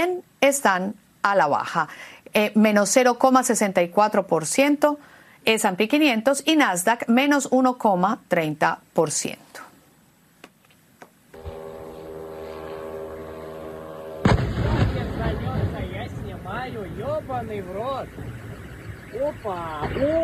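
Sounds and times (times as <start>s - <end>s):
speech: 0.0s - 9.4s, 16.8s - 18.3s, 19.1s - 20.2s
steady droning tone: 11.3s - 20.2s
Russian air defense intercepting a Ukrainian drone over Pavlovsky Posad, blast: 11.4s - 20.2s
continuous rumbling noise: 11.4s - 20.2s
excited voices: 19.1s - 20.2s.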